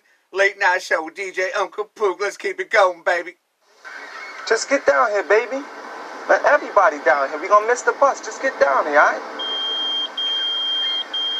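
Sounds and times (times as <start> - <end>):
speech: 0.3 - 3.4, 4.5 - 9.4
pager beeping: 9.4 - 11.3.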